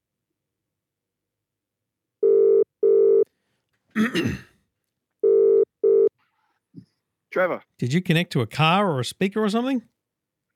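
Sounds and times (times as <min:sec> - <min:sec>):
telephone ringback tone: 0:02.2 - 0:03.2, 0:05.2 - 0:06.1
speech: 0:04.0 - 0:04.5, 0:07.4 - 0:09.9.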